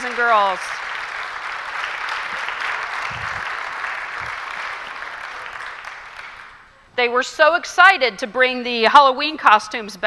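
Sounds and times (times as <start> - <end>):
speech: 0.0 - 0.8, 7.0 - 10.0
audience applause: 0.0 - 6.7.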